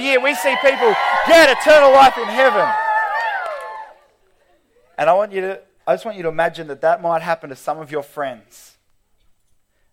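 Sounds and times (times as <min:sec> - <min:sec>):
speech: 0:00.0 - 0:02.8, 0:05.0 - 0:08.8
youth audience cheering: 0:00.0 - 0:04.1.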